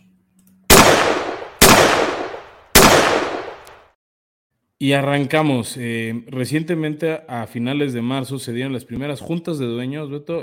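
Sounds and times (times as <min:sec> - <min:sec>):
gunshot sound effects: 0:00.7 - 0:03.8
speech: 0:04.8 - 0:10.4.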